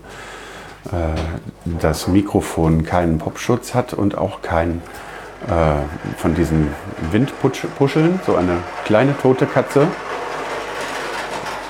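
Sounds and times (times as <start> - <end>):
speech: 0.8 - 10.1
ride-on toy car rolling by: 2.7 - 11.6.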